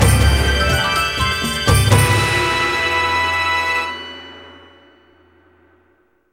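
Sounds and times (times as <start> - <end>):
battle end music: 0.0 - 4.6.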